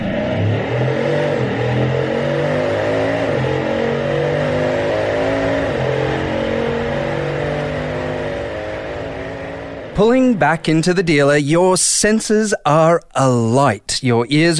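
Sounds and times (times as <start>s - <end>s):
Bugatti Chiron engine roaring through gear changes: 0.0s - 12.4s
speech: 10.0s - 14.5s.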